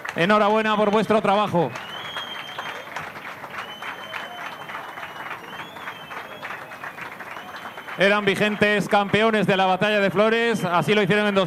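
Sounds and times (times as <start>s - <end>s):
large crowd applauding: 0.0s - 11.4s
speech: 0.2s - 1.8s, 8.0s - 11.4s
whistling: 1.7s - 8.8s.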